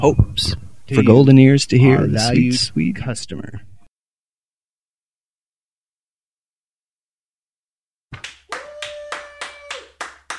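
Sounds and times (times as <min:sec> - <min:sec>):
speech: 0:00.0 - 0:03.7
hands clapping: 0:08.1 - 0:10.3.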